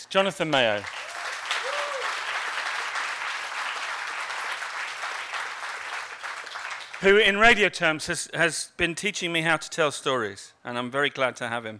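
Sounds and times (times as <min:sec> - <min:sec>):
speech: 0:00.0 - 0:01.1, 0:07.0 - 0:11.7
audience applause: 0:00.8 - 0:07.2.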